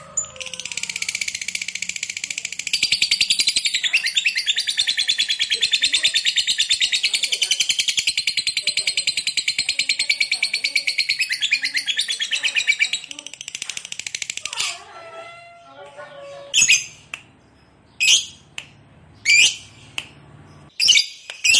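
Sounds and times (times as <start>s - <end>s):
lovebird chattering: 0.0s - 15.3s, 16.0s - 17.1s, 17.9s - 18.5s, 19.2s - 20.0s.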